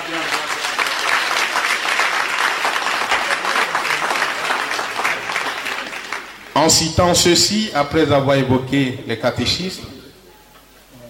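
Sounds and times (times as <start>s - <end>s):
church congregation applauding the choir singers: 0.0s - 7.1s
speech: 6.6s - 9.9s.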